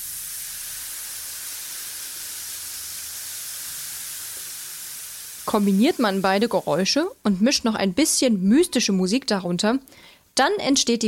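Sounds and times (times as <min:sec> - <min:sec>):
baking powder fizzing in hot water: 0:00.0 - 0:07.0
speech: 0:05.5 - 0:11.0.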